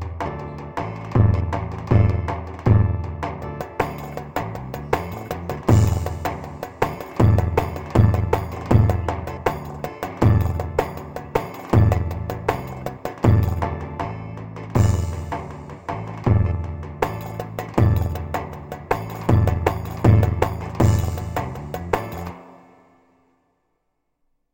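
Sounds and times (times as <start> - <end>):
Korg Pa500 keyboard playing: 0.2 - 22.8.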